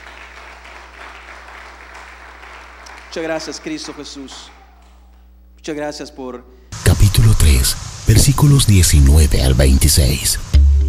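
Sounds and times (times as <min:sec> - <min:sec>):
audience applauding: 0:00.0 - 0:05.0
speech: 0:03.1 - 0:04.6, 0:05.6 - 0:10.8.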